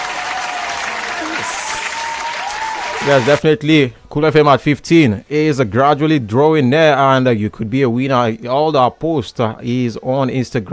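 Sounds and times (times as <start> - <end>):
audience clapping: 0.0 - 3.4
speech: 3.0 - 10.7.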